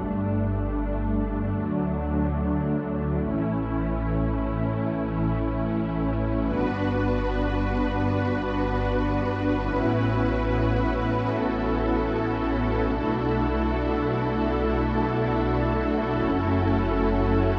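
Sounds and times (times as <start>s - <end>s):
analog synth pad: 0.0s - 17.5s.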